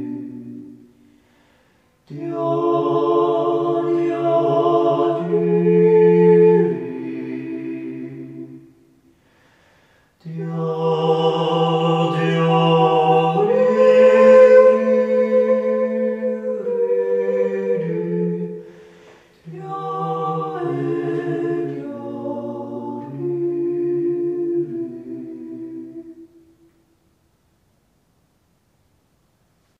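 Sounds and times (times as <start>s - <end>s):
devotional yodeling: 0.0s - 0.9s, 2.1s - 8.7s, 10.2s - 18.8s, 19.4s - 26.7s.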